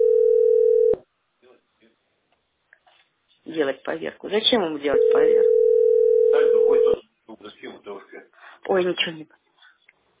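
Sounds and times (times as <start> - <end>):
telephone ringing tone: 0.0 - 1.0, 5.0 - 7.0
speech: 3.6 - 5.7, 8.7 - 9.4.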